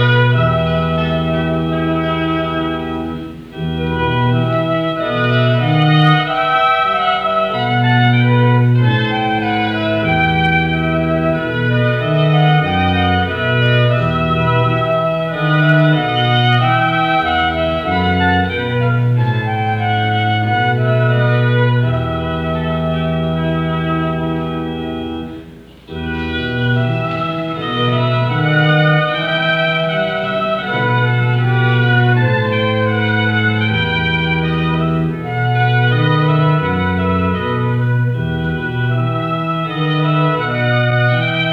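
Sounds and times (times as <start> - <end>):
flute playing a wedding march: 0.0 - 41.5
oboe playing a wedding march: 0.0 - 41.5
organ playing a wedding march: 0.0 - 41.5.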